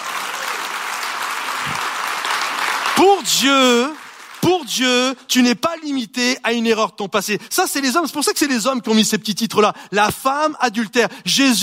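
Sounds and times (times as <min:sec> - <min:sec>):
audience applauding: 0:00.0 - 0:05.2
speech: 0:03.0 - 0:11.6.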